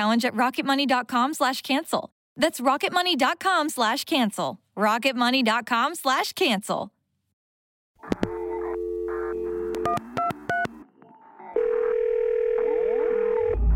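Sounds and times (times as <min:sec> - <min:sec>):
speech: 0:00.0 - 0:07.0
telephone ringing: 0:08.0 - 0:10.7, 0:11.6 - 0:13.6.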